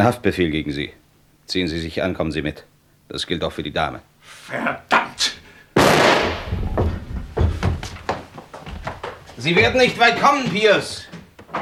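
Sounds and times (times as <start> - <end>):
speech: 0.0 - 5.4, 9.4 - 11.6
gunshot: 5.8 - 6.8.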